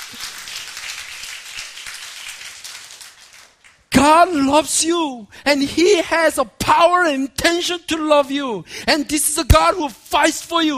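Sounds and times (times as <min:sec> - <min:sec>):
church audience clapping: 0:00.0 - 0:04.0
speech: 0:04.0 - 0:10.7.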